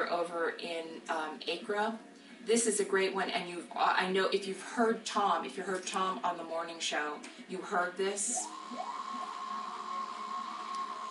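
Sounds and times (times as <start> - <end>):
speech: 0.1 - 9.0
analog drone synthesizer driven by weather data: 8.2 - 11.0.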